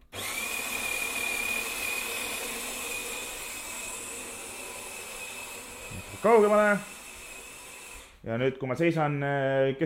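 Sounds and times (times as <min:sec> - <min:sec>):
coffee machine whirring: 0:00.0 - 0:08.2
speech: 0:06.0 - 0:07.0, 0:08.2 - 0:09.8.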